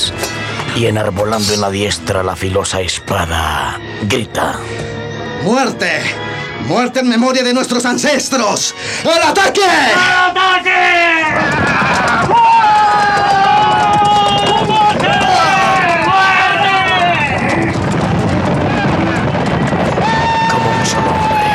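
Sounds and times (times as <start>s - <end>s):
speech: 0.8s - 12.2s
horses galloping over a hill: 10.9s - 21.5s.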